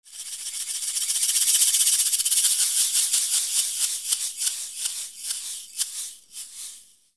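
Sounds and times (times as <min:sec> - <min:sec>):
percussion: 0:00.1 - 0:07.0.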